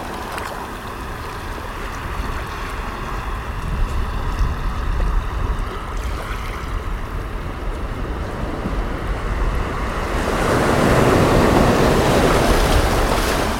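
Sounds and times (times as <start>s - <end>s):
waves at the seashore: 0.0s - 13.5s.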